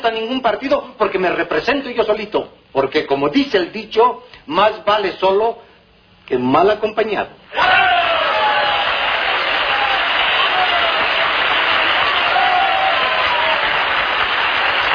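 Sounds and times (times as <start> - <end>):
speech: 0.0 - 5.7, 6.3 - 7.8
audience applause: 7.6 - 14.9.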